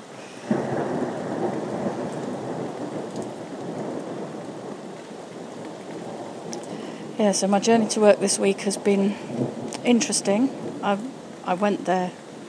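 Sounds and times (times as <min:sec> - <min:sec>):
heavy rain: 0:00.0 - 0:12.4
thunder rumbling: 0:00.0 - 0:12.4
speech: 0:07.2 - 0:12.2.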